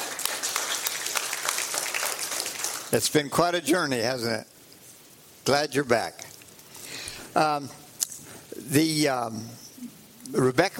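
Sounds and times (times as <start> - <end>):
audience applauding to welcome a returning man: 0.0 - 3.1
speech: 2.9 - 4.5, 5.5 - 6.3, 7.4 - 7.8, 8.6 - 9.6, 10.3 - 10.7.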